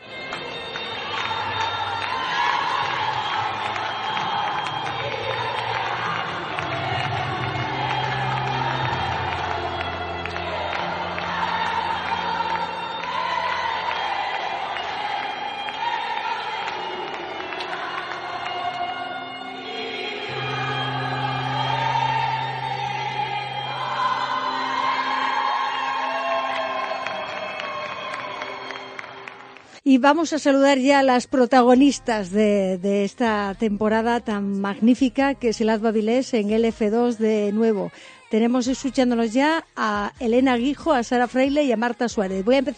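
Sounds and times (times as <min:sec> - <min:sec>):
crowd singing an anthem: 0:00.0 - 0:29.5
faint cheering: 0:00.9 - 0:18.8, 0:20.3 - 0:29.6
speech: 0:29.9 - 0:42.7.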